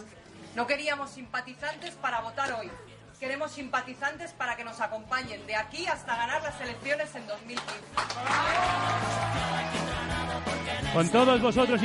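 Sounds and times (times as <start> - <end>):
music playing: 0.0 - 11.8
speech: 0.6 - 9.8, 10.5 - 11.8
enthusiastic audience applause: 7.5 - 10.4.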